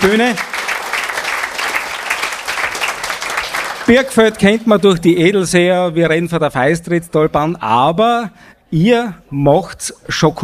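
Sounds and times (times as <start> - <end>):
speech: 0.0 - 0.5, 3.9 - 10.4
audience applause: 0.0 - 4.4.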